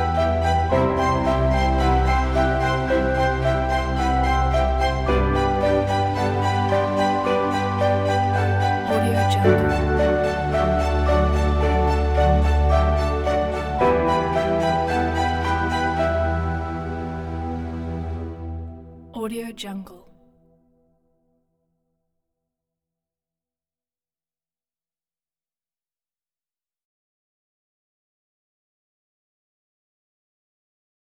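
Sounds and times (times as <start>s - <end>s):
emotional documentary string music: 0.0s - 19.6s.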